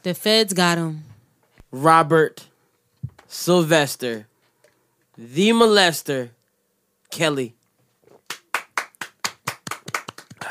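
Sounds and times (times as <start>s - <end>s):
speech: 0.0s - 1.1s, 1.7s - 2.5s, 3.3s - 4.3s, 5.2s - 6.4s, 7.1s - 7.6s
hands clapping: 8.1s - 10.4s.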